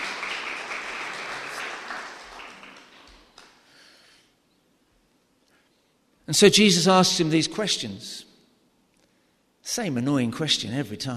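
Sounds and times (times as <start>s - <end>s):
audience applause: 0.0s - 3.6s
speech: 6.3s - 8.3s, 9.7s - 11.1s.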